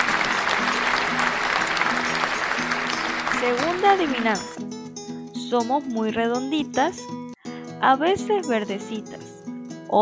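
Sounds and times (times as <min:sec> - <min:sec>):
applause: 0:00.0 - 0:04.6
speech: 0:03.4 - 0:04.7, 0:05.5 - 0:07.2, 0:07.8 - 0:09.2.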